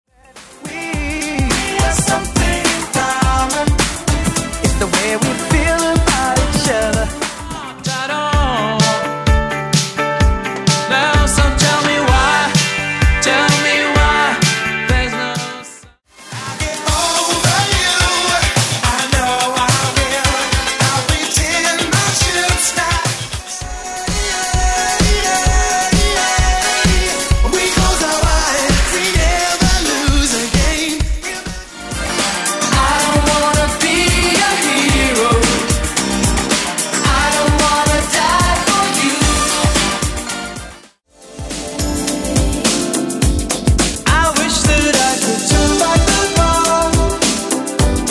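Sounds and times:
Redrum drum machine beat: 0.4s - 15.4s, 16.9s - 40.2s, 41.4s - 48.0s.

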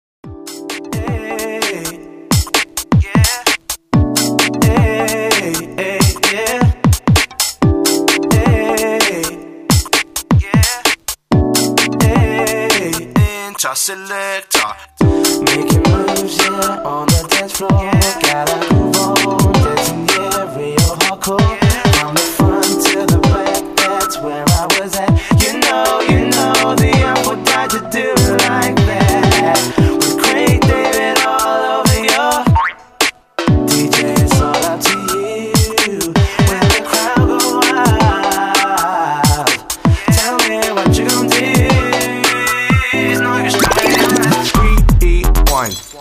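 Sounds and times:
130 bpm music track: 0.2s - 6.7s, 7.3s - 13.5s, 14.9s - 32.6s, 33.4s - 45.8s.

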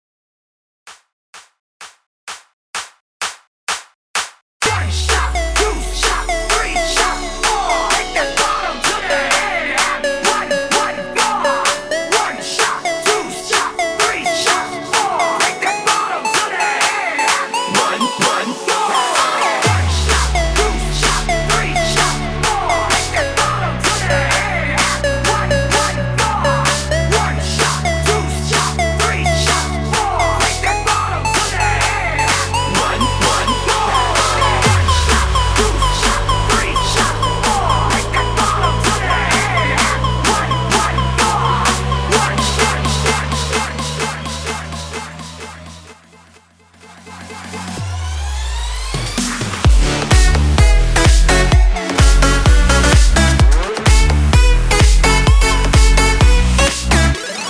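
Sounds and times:
party dance track at 128 BPM: 2.3s - 57.4s.

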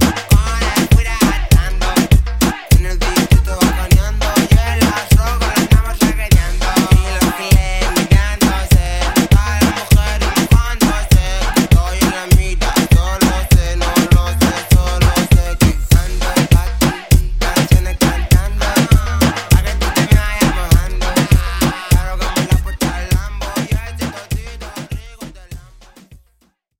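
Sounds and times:
Redrum drum machine beat: 0.0s - 26.5s.

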